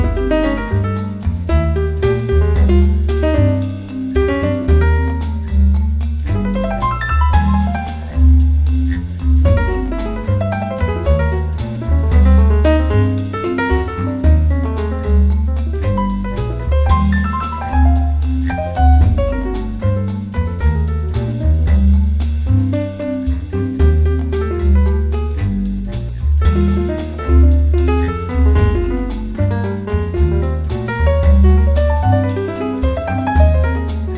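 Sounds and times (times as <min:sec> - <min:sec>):
solo piano piece: 0:00.0 - 0:34.1.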